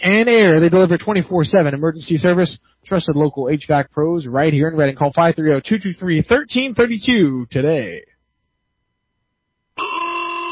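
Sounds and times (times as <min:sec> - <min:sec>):
speech: 0:00.0 - 0:08.1
horns honking: 0:09.8 - 0:10.5.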